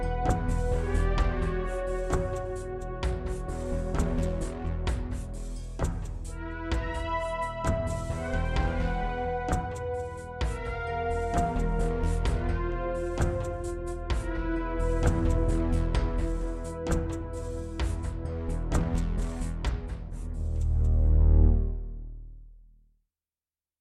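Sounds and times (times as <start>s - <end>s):
Roland JV-1080: 0.0s - 22.4s.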